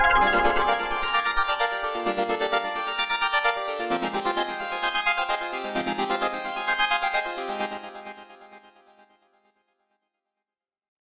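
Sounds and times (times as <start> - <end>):
synth arpeggio: 0.2 - 9.1.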